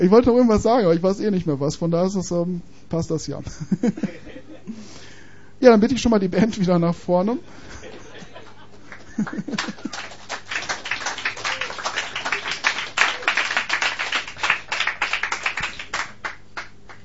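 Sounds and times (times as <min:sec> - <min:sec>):
speech: 0:00.0 - 0:04.9, 0:05.6 - 0:07.7, 0:09.2 - 0:10.1
laughter: 0:03.5 - 0:04.8, 0:07.6 - 0:13.6
crowd applause: 0:08.2 - 0:17.0.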